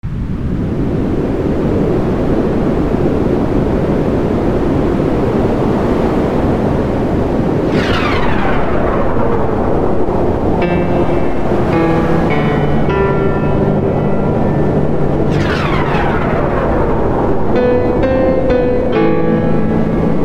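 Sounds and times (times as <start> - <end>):
wind: 0.0 - 20.2
tempest: 0.1 - 20.2
piano: 7.6 - 20.2.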